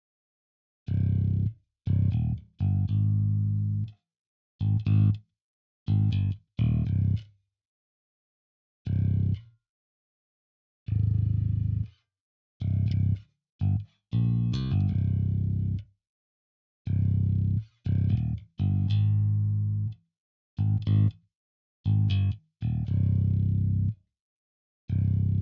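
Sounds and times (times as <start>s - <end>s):
bass: 0.8s - 4.0s, 4.6s - 5.3s, 5.9s - 7.4s, 8.8s - 9.5s, 10.8s - 15.9s, 16.8s - 20.0s, 20.6s - 24.0s, 24.9s - 25.3s.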